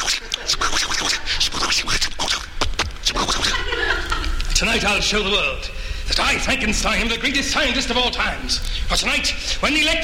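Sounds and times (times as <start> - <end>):
laughter: 0.0 - 0.7, 3.0 - 4.6
pencil scribbling on a scratch pad: 0.0 - 2.4, 3.1 - 3.6
speech: 4.8 - 10.0.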